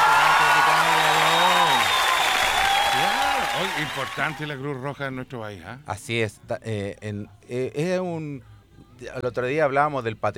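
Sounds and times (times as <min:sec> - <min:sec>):
applause: 0:00.0 - 0:04.6
speech: 0:03.9 - 0:10.3.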